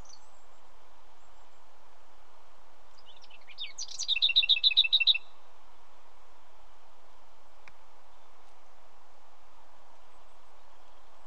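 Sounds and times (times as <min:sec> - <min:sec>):
leaf warbler song: 0:00.0 - 0:11.2.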